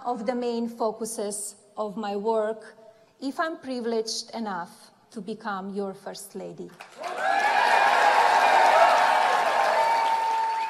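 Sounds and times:
speech: 0:00.0 - 0:07.4
large audience applauding: 0:06.8 - 0:10.6
faint cheering: 0:07.0 - 0:10.6.

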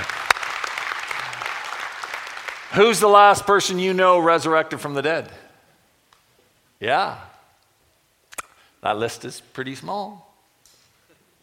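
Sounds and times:
audience clapping: 0:00.0 - 0:03.6
speech: 0:02.7 - 0:05.4, 0:06.8 - 0:07.3, 0:08.8 - 0:10.3.

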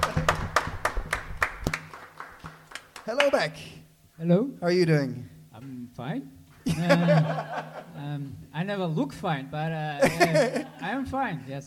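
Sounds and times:
audience applause: 0:00.0 - 0:03.3
speech: 0:03.1 - 0:11.6
laughter: 0:06.6 - 0:08.0, 0:10.0 - 0:10.9.

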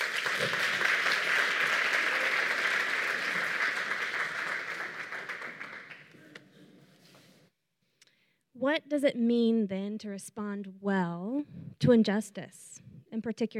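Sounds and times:
round of applause: 0:00.0 - 0:06.4
speech: 0:08.6 - 0:13.5.

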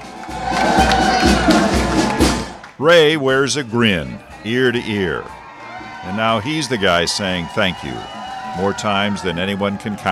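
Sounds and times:
crowd cheering: 0:00.0 - 0:10.1
speech: 0:02.8 - 0:05.4, 0:06.0 - 0:10.1.

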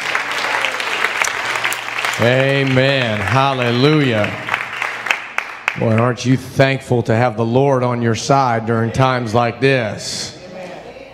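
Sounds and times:
audience clapping: 0:00.0 - 0:06.4
speech: 0:02.2 - 0:04.5, 0:05.8 - 0:10.3.

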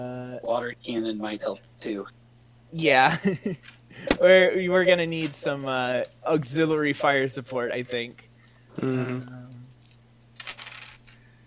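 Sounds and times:
speech: 0:00.0 - 0:09.4
low steady hum: 0:00.0 - 0:11.4
dice rolling on a table: 0:09.6 - 0:11.2.

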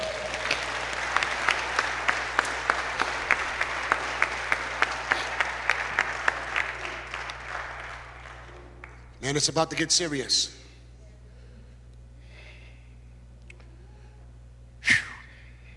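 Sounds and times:
crowd noise: 0:00.0 - 0:08.9
audience clapping in a steady rhythm: 0:00.0 - 0:09.7
speech: 0:09.3 - 0:10.6.

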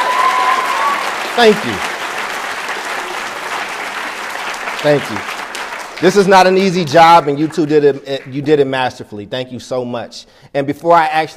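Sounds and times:
person whooping: 0:00.0 - 0:01.6
audience applause: 0:00.0 - 0:08.5
speech: 0:01.4 - 0:01.9, 0:04.8 - 0:05.3, 0:06.0 - 0:11.3.

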